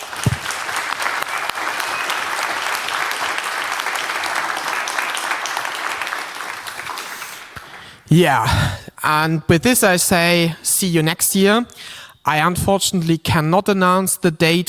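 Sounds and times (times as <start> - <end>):
crowd applauding: 0.0 - 8.7
speech: 8.1 - 14.6.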